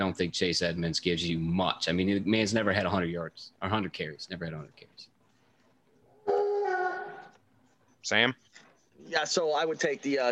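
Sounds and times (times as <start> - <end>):
speech: 0.1 - 5.1, 8.0 - 8.4, 9.0 - 10.3
dog whining: 6.1 - 7.4.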